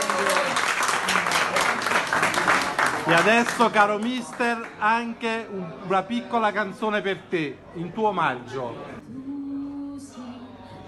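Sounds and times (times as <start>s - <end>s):
audience applause: 0.0s - 4.8s
speech: 3.1s - 9.2s.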